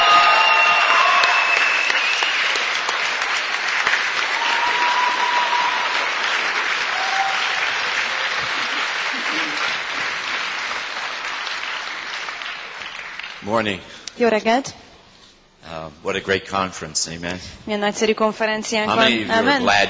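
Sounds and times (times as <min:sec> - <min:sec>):
audience applause at a Budapest conference welcoming a pastor: 0:00.0 - 0:13.7
speech: 0:13.5 - 0:14.8, 0:15.9 - 0:19.8.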